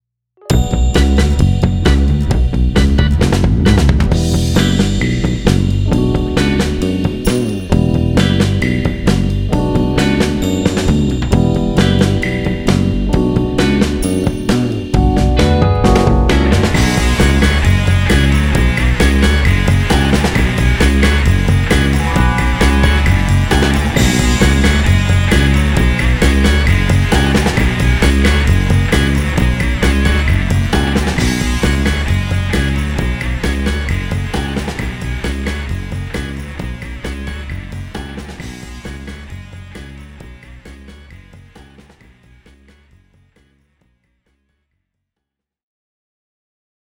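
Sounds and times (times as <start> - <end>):
instrumental music: 0.4 - 37.5.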